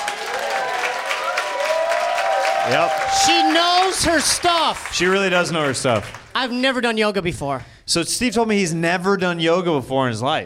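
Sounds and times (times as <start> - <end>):
audience applause following a yoga class: 0.0 - 6.5
speech: 2.6 - 10.4.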